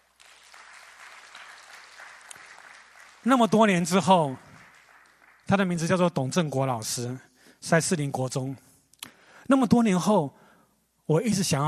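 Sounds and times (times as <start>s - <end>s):
audience applause: 0.0s - 6.0s
speech: 3.2s - 4.4s, 5.5s - 8.7s, 9.5s - 10.4s, 11.1s - 11.6s.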